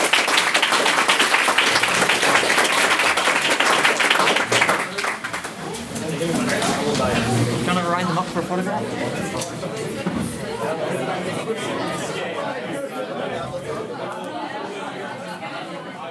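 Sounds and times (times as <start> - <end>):
audience applause: 0.0 - 11.5
murmuring voices: 3.9 - 16.0.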